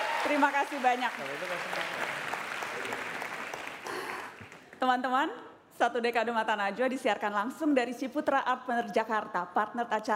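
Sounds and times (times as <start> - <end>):
audience applause: 0.0 - 4.7
speech: 0.2 - 3.0, 4.8 - 10.1.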